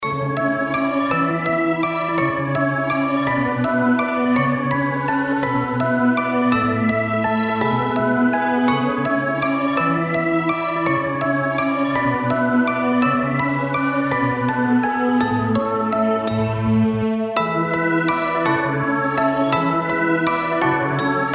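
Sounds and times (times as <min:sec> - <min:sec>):
fantasy-style music box melody: 0:00.2 - 0:16.4, 0:17.4 - 0:21.3.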